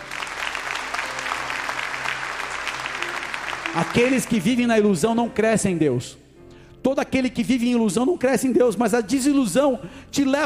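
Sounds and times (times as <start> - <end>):
audience applauding: 0.0 - 4.7
speech: 3.7 - 6.2, 6.8 - 10.4.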